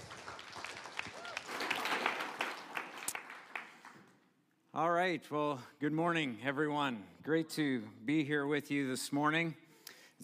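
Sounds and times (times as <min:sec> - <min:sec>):
crowd applauding: 0:00.0 - 0:04.2
speech: 0:04.8 - 0:09.6.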